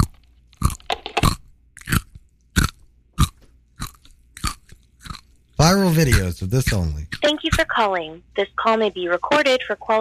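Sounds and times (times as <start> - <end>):
crunching Nerds candy: 0.0 - 7.2
speech: 5.7 - 9.9.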